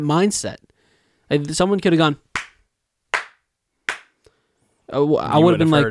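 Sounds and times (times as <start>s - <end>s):
speech: 0.0s - 0.6s, 1.3s - 2.2s, 4.9s - 5.8s
hand clap: 2.4s - 4.3s.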